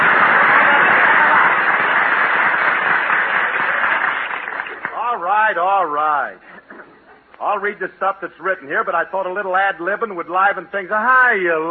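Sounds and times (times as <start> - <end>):
studio audience applause: 0.0 - 5.3
speech: 7.5 - 11.6.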